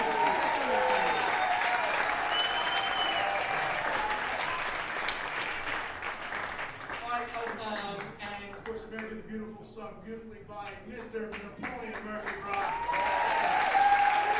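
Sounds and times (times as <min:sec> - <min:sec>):
audience applause: 0:00.0 - 0:08.6, 0:11.9 - 0:14.3.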